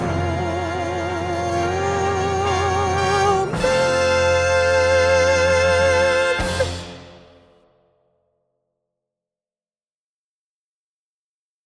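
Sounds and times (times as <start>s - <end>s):
soprano singing: 0.0s - 7.2s.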